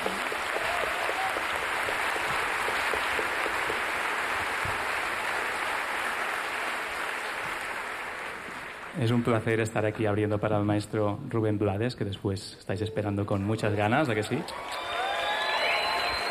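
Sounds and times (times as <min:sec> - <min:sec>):
crowd applauding at a jazz festival: 0:00.0 - 0:10.3, 0:14.0 - 0:16.2
speech: 0:09.0 - 0:14.8.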